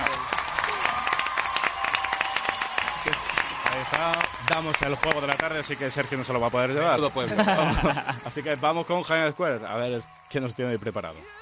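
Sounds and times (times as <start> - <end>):
applause sound effect: 0.0 - 11.2
speech: 3.9 - 11.3
laughter: 6.8 - 8.6.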